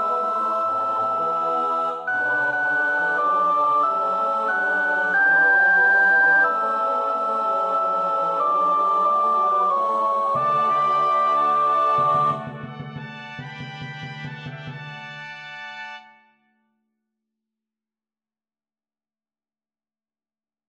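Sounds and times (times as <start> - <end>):
soprano practising a choir part: 0.0 - 13.0.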